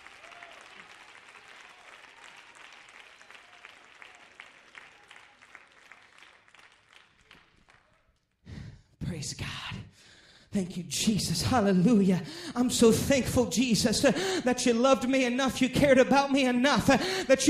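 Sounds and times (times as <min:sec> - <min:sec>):
audience applauding: 0:00.0 - 0:08.3
speech: 0:09.2 - 0:17.4.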